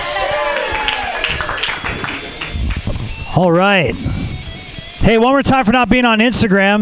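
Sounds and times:
audience clapping: 0:00.0 - 0:03.2
speech: 0:03.4 - 0:04.1, 0:05.0 - 0:06.8.

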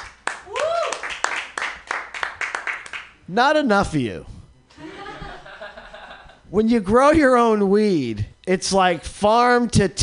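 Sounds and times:
scattered audience clapping: 0:00.0 - 0:03.1
person whooping: 0:00.4 - 0:01.2
speech: 0:03.3 - 0:04.3, 0:06.5 - 0:10.0
laughter: 0:04.7 - 0:06.5.

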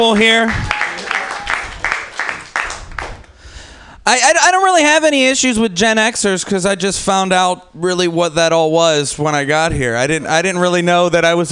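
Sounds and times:
speech: 0:00.0 - 0:00.7, 0:04.0 - 0:11.5
audience applause at a comedy show: 0:00.0 - 0:03.3.

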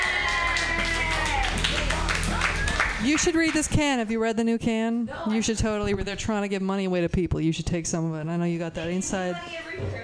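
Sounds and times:
audience applause at an open mic comedy night: 0:00.0 - 0:03.8
speech: 0:03.0 - 0:10.0.

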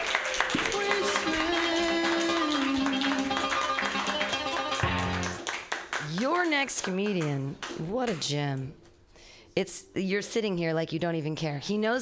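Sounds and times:
audience clapping: 0:00.0 - 0:08.4
speech: 0:06.5 - 0:08.8, 0:09.6 - 0:11.9.

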